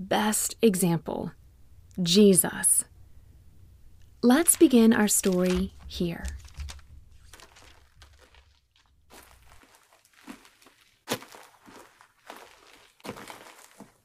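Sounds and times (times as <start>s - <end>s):
speech: 0.0s - 1.4s, 2.0s - 2.9s, 4.2s - 6.4s
feet scuffing along a dirt path: 7.2s - 14.0s.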